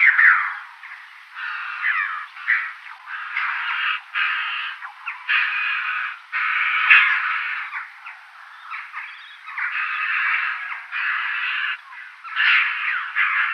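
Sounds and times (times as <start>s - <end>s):
choughs giving continuous harsh grating calls: 0.0s - 13.5s.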